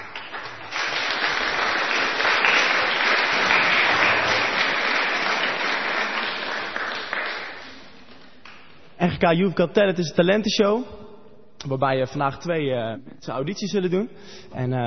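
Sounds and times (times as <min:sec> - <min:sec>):
audience applause for the jury: 0:00.0 - 0:08.8
speech: 0:09.2 - 0:11.0, 0:11.6 - 0:14.8.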